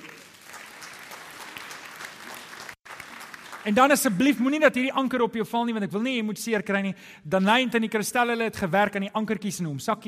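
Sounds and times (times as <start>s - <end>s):
audience clapping hands: 0.0s - 4.6s
speech: 3.6s - 10.0s.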